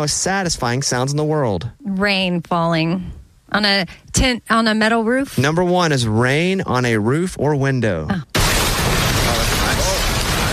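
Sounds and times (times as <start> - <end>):
speech: 0.0 - 8.3
crackling campfire: 8.2 - 10.5.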